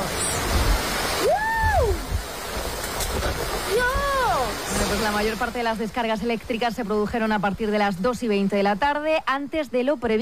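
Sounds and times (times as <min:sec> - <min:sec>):
storm rain: 0:00.0 - 0:10.1
strong storm wind: 0:00.0 - 0:10.1
person crying out: 0:01.2 - 0:02.1
speech: 0:05.0 - 0:10.1.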